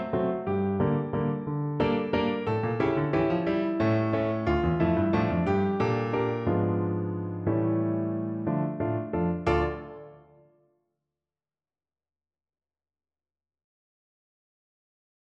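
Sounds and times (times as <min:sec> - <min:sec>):
piano: 0:00.0 - 0:10.5.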